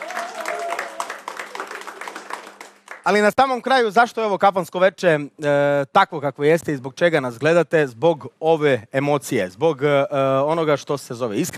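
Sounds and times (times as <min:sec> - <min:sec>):
audience applause at a tavern-style music evening: 0:00.0 - 0:03.3
speech: 0:03.1 - 0:11.5.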